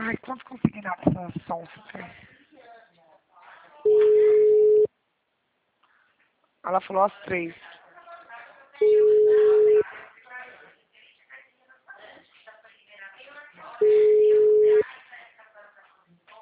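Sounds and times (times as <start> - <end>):
speech: 0.2 - 2.4, 6.6 - 7.7
ringback tone of an unanswered telephone call: 3.9 - 4.9, 8.8 - 9.8, 13.8 - 14.8.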